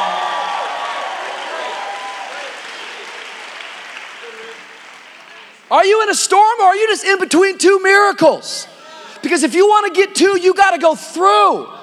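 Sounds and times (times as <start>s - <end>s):
audience applauding and cheering: 0.0s - 5.7s
speech: 5.7s - 11.8s.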